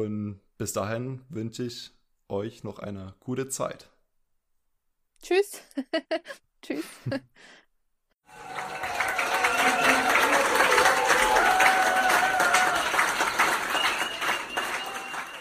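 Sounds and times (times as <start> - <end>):
speech: 0.0 - 3.9, 5.2 - 7.6
thunderous applause: 8.3 - 15.3.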